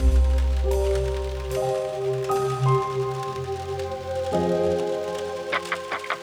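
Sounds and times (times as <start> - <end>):
synth pads: 0.0 - 6.2.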